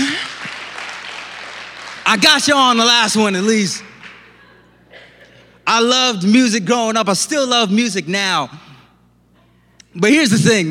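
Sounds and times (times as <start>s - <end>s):
round of applause: 0.0s - 2.8s
speech: 2.1s - 3.9s, 5.7s - 8.6s, 10.0s - 10.7s.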